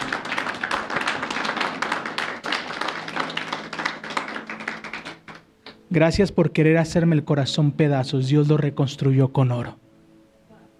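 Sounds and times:
audience applauding: 0:00.0 - 0:05.8
speech: 0:05.9 - 0:09.8.

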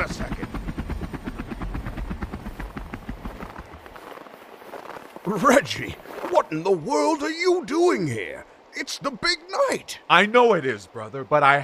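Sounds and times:
engine chugging: 0:00.0 - 0:03.9
speech: 0:05.3 - 0:11.6.

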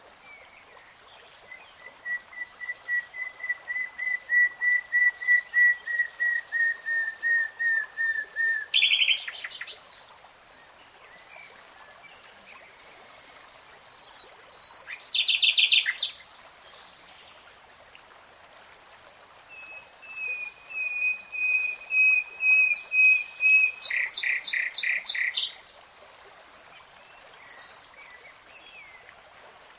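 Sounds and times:
nightingale singing: 0:02.0 - 0:09.8, 0:14.9 - 0:16.2, 0:20.1 - 0:25.6.

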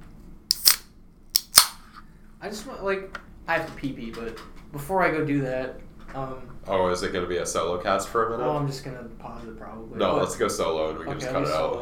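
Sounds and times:
Mountain Lightning Energy Zero can cracked open: 0:00.5 - 0:00.8, 0:01.4 - 0:01.8
speech: 0:02.4 - 0:11.8.

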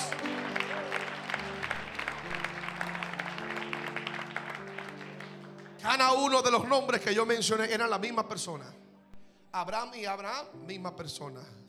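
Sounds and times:
loud audience applause: 0:00.0 - 0:06.0
speech: 0:05.9 - 0:08.8, 0:09.5 - 0:11.6.

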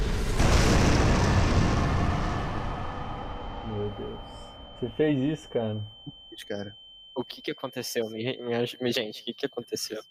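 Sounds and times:
explosion sound effect: 0:00.0 - 0:05.2
speech: 0:04.8 - 0:10.0.

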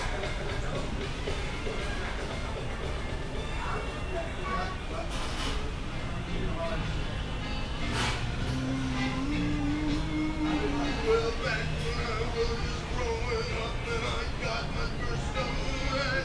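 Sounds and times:
low continuous rumble: 0:00.0 - 0:16.2
murmur of many voices at Animal Kingdom: 0:00.0 - 0:16.2.

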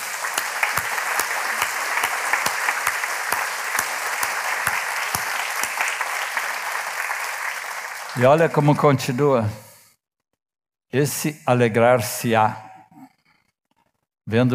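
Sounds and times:
audience applauding: 0:00.0 - 0:09.4
speech: 0:08.2 - 0:09.6, 0:10.9 - 0:12.6, 0:14.3 - 0:14.5.

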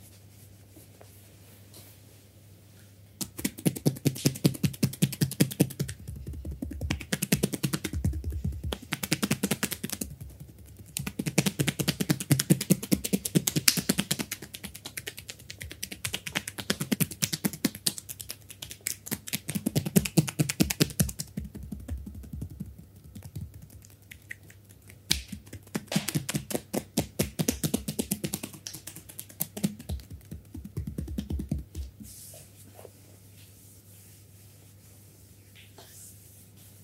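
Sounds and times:
massager tapping and slapping strokes in full body massage: 0:03.2 - 0:24.3, 0:25.1 - 0:32.0.

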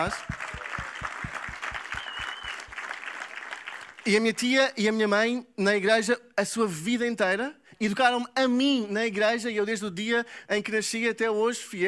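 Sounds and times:
speech: 0:00.0 - 0:00.4, 0:04.0 - 0:11.8
audience applause: 0:00.0 - 0:04.1.

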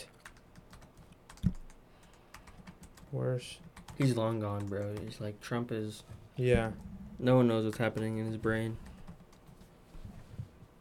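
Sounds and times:
typing a note on a computer keyboard: 0:00.1 - 0:05.2, 0:07.5 - 0:09.7
speech: 0:03.1 - 0:08.9.

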